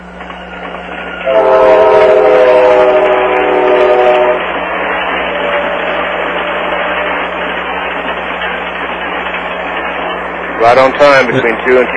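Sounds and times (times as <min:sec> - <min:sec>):
Amtrak passenger train rumbling past: 0:00.0 - 0:11.9
speech: 0:01.2 - 0:01.5, 0:10.6 - 0:11.9
Amtrak passenger train horn blaring: 0:01.2 - 0:04.6, 0:05.3 - 0:07.3.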